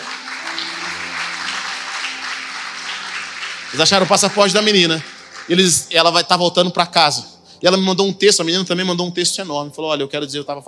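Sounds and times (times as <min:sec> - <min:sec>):
audience applause: 0:00.0 - 0:05.8
speech: 0:03.7 - 0:10.6.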